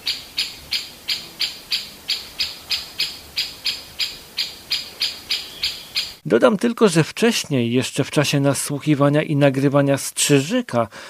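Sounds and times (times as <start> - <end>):
great spotted woodpecker alarm call: 0.0 - 6.2
speech: 6.3 - 11.0.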